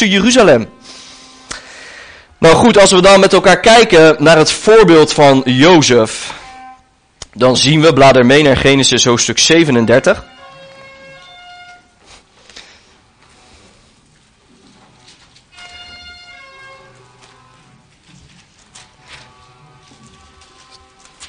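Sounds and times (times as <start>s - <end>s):
speech: 0.0s - 0.8s, 2.4s - 6.4s, 7.4s - 10.4s
car horns honking outside: 0.2s - 2.6s, 5.7s - 7.0s, 9.6s - 12.0s, 15.6s - 17.1s.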